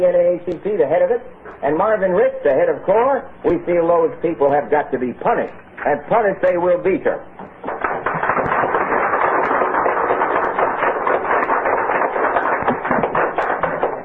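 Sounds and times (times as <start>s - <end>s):
speech: 0.0s - 7.8s
coffeehouse audience applauding: 7.7s - 14.0s.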